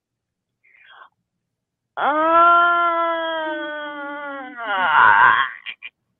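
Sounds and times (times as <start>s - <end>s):
exaggerated drawn-out yawn: 2.0s - 5.8s.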